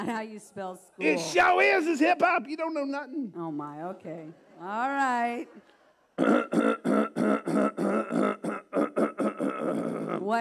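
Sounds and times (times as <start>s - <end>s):
speech: 0.0s - 8.6s
rasping throat clearing: 6.2s - 10.3s.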